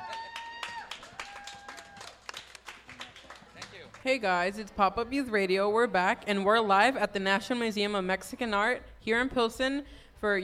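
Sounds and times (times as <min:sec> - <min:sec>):
audience applause: 0:00.0 - 0:04.0
speech: 0:04.0 - 0:10.4.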